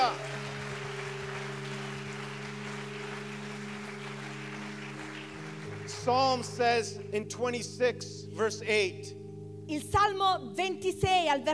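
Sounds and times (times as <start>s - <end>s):
audience applauding: 0.0s - 7.0s
speech: 6.0s - 11.5s.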